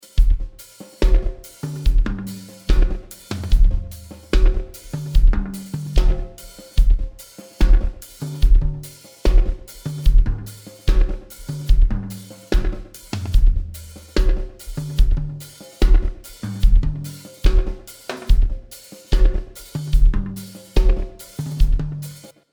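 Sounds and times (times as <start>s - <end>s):
drums with dirty delay: 0.0s - 22.3s.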